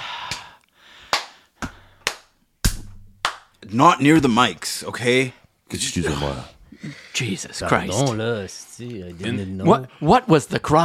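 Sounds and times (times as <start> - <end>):
hands clapping: 0.0 - 3.6
speech: 3.7 - 10.8.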